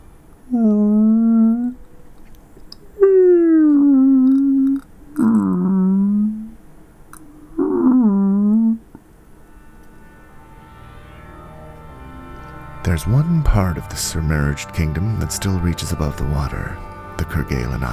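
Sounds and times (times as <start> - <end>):
soft humpback whale sounds: 0.5 - 2.2, 2.9 - 10.6
speech: 13.0 - 17.9.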